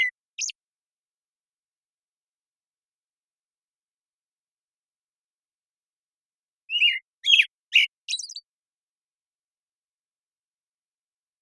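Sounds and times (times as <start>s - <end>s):
American Robin caroling whistles: 6.7s - 8.4s.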